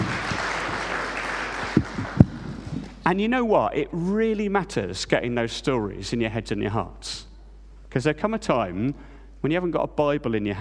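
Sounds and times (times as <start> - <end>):
audience clapping for a performer: 0.0 - 3.0
speech: 3.1 - 7.3, 7.9 - 10.5.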